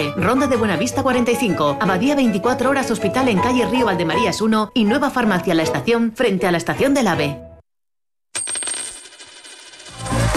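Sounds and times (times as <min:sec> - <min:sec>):
speech: 0:00.0 - 0:07.5
euro coin dropping: 0:08.4 - 0:10.3.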